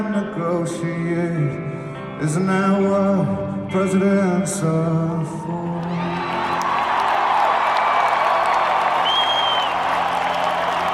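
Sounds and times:
speech: 0:00.0 - 0:06.1
crowd cheering and applauding: 0:05.2 - 0:10.9.

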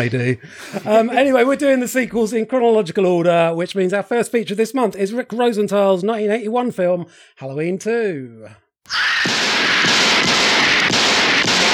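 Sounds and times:
speech: 0:00.0 - 0:10.0
gunshots from the Halloween II film trailer: 0:09.2 - 0:11.7.

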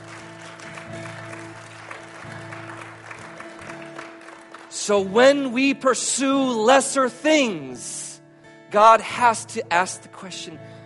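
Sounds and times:
audience applause: 0:00.0 - 0:04.8
speech: 0:04.8 - 0:08.0, 0:08.7 - 0:10.7.

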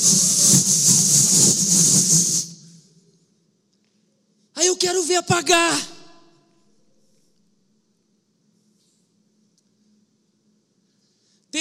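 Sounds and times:
voice imitating a blowtorch flame: 0:00.0 - 0:02.8
speech: 0:04.8 - 0:05.9.

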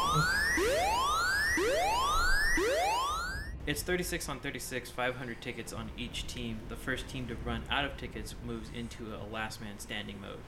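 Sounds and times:
whooping alarm sound effect: 0:00.0 - 0:03.6
speech: 0:03.7 - 0:10.4.

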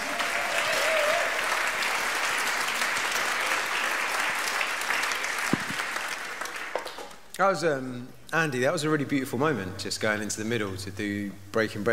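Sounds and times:
audience applause: 0:00.0 - 0:07.1
speech: 0:07.4 - 0:11.9.

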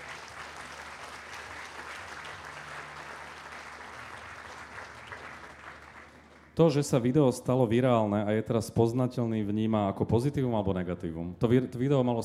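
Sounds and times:
audience applause: 0:00.0 - 0:06.8
speech: 0:06.6 - 0:12.2.

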